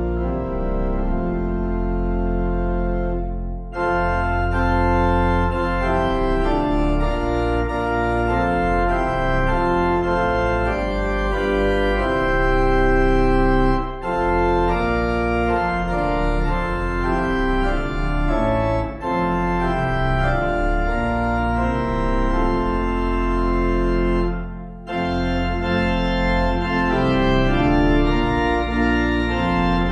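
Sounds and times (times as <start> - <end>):
organ: 0.0 - 29.9.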